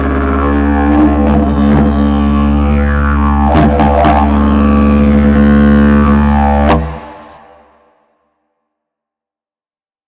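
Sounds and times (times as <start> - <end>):
didgeridoo: 0.0 - 8.0.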